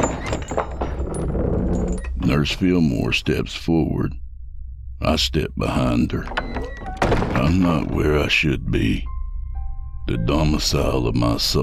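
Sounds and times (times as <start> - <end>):
heavy basement door flung open: 0.0 - 2.6, 6.2 - 8.2
speech: 2.3 - 4.2, 5.0 - 6.4, 7.4 - 9.1, 10.1 - 11.6.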